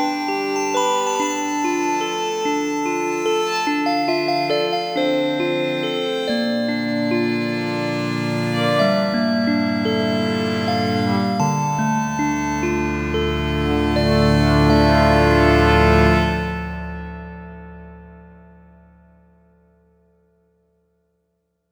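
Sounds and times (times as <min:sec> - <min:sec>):
synthesizer viol bell tone: 0:00.0 - 0:16.9.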